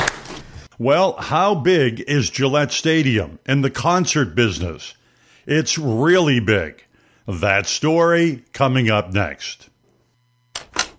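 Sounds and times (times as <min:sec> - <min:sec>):
speech: 0:00.8 - 0:09.7
faint low hum: 0:01.6 - 0:10.9
door lock on a solid door clicking shut: 0:10.5 - 0:10.9.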